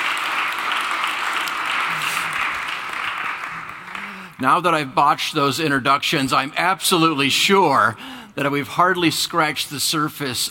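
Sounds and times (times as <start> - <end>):
crowd applauding: 0.0 - 4.4
speech: 4.4 - 10.4.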